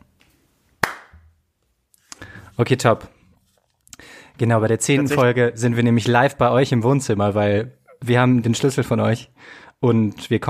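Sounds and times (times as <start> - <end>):
single hand clap: 0.8 - 1.2
speech: 2.6 - 3.2, 4.4 - 10.4.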